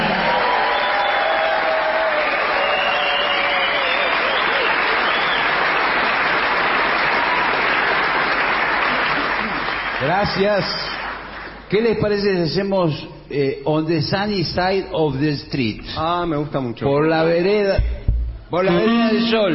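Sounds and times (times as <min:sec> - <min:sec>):
audience applause: 0:00.0 - 0:11.7
speech: 0:10.2 - 0:10.9, 0:11.7 - 0:19.5.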